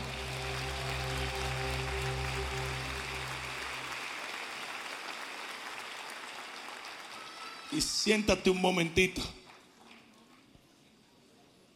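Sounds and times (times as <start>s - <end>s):
low organ-like chords: 0.0s - 4.0s
audience applause: 0.0s - 8.3s
speech: 7.8s - 9.4s.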